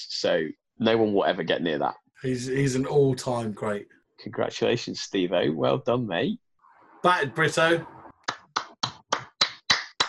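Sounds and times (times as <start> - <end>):
speech: 0.0 - 6.4, 7.0 - 8.0
small round of applause: 8.3 - 10.0.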